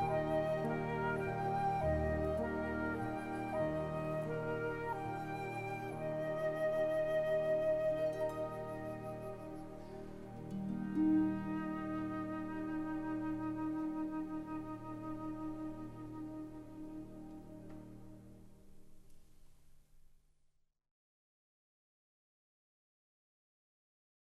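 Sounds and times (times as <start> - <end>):
flute and orchestra: 0.0 - 18.9.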